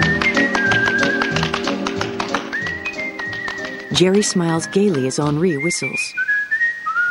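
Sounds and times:
tap dancing, heels and toes: 0:00.0 - 0:05.4
speech: 0:03.9 - 0:06.3.

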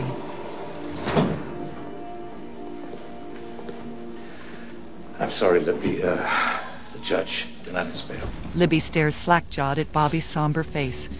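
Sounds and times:
jail cell door opening: 0:00.2 - 0:01.8
speech: 0:05.3 - 0:11.1.

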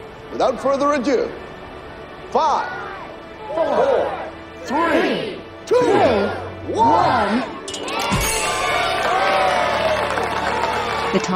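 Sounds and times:
speech: 0:00.4 - 0:01.5, 0:02.3 - 0:02.9, 0:03.5 - 0:07.6, 0:11.1 - 0:11.3
crowd cheering at a Christmas tree lighting ceremony: 0:02.4 - 0:11.3
crowd clapping at a Christmas tree lighting ceremony: 0:08.2 - 0:11.3.

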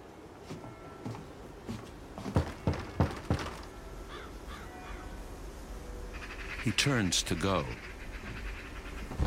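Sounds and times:
soft footsteps: 0:00.3 - 0:03.7
knocking on a wooden door: 0:02.2 - 0:03.7
crows cawing faintly: 0:02.4 - 0:05.2, 0:06.1 - 0:06.8, 0:07.4 - 0:09.1
speech: 0:06.6 - 0:07.9.

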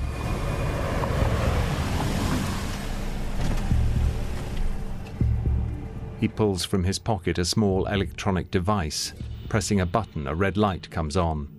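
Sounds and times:
saloon car parking: 0:00.0 - 0:06.3
speech: 0:06.2 - 0:11.5.

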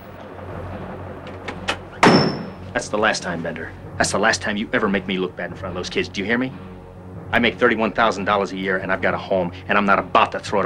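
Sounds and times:
low steady hum: 0:00.0 - 0:10.6
door slamming shut: 0:01.3 - 0:02.6
speech: 0:02.8 - 0:06.7, 0:07.3 - 0:10.6.

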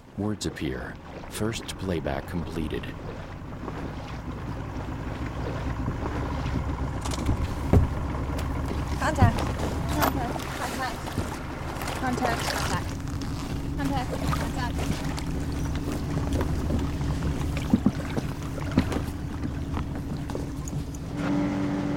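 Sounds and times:
research boat engine droning: 0:00.0 - 0:21.9
speech: 0:00.2 - 0:03.3, 0:09.0 - 0:11.0, 0:12.0 - 0:12.9, 0:13.8 - 0:17.0
sharp knocks: 0:07.0 - 0:08.8.

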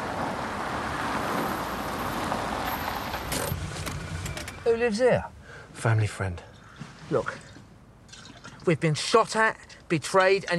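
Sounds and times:
car engine and tyre rumble: 0:00.0 - 0:04.9
speech: 0:04.7 - 0:06.5, 0:07.1 - 0:07.5, 0:08.7 - 0:10.5.

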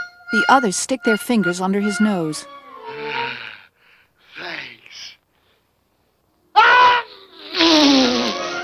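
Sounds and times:
speech: 0:00.3 - 0:02.6
sneeze: 0:06.6 - 0:08.4.

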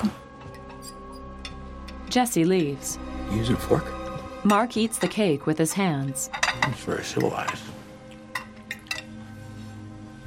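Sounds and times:
dishes clinking while being dried in a kitchen: 0:00.0 - 0:02.8, 0:04.0 - 0:09.2
speech: 0:02.1 - 0:07.8.

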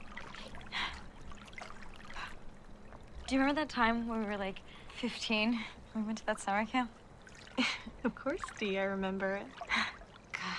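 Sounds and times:
someone treading water: 0:00.0 - 0:10.5
speech: 0:03.3 - 0:07.0, 0:07.6 - 0:09.9.

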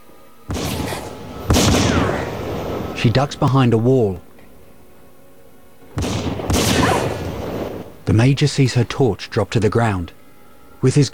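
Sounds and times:
gunshot: 0:00.5 - 0:03.3, 0:05.9 - 0:08.0
speech: 0:03.0 - 0:04.3, 0:08.1 - 0:10.2, 0:10.8 - 0:11.1.

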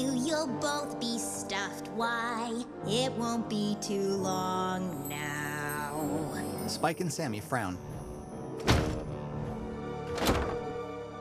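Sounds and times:
speech: 0:00.0 - 0:05.3, 0:06.0 - 0:08.0
door slamming shut: 0:08.6 - 0:09.2, 0:10.0 - 0:10.8.

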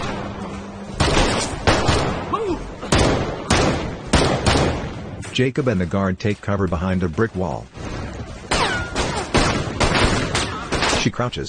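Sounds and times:
gunfire exchanged between officers: 0:00.0 - 0:05.2, 0:07.8 - 0:11.3
speech: 0:05.4 - 0:07.9, 0:11.0 - 0:11.4.

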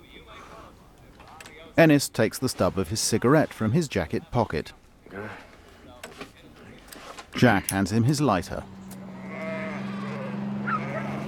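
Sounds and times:
speech: 0:01.8 - 0:05.4, 0:07.4 - 0:08.8
sheep bleating leaving a livestock transporter: 0:09.1 - 0:11.2.

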